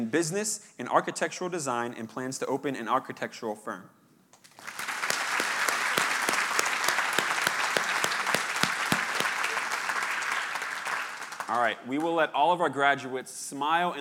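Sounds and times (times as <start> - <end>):
speech: 0.0 - 4.0, 11.5 - 13.9
audience applause for graduates: 4.4 - 11.7.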